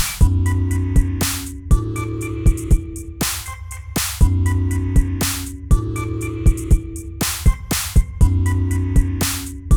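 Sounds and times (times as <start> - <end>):
sine wave tone: 0.2 - 3.1, 4.2 - 7.2, 8.2 - 9.7.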